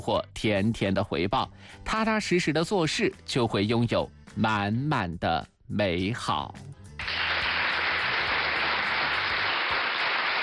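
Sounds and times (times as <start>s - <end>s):
speech: 0.0s - 7.3s
audience applause: 7.0s - 10.4s.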